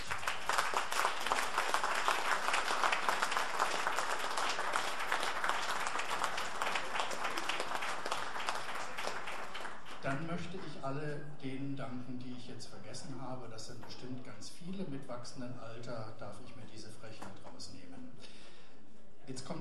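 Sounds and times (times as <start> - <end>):
audience applause: 0.0 - 10.1
speech: 10.9 - 18.4, 19.3 - 19.6.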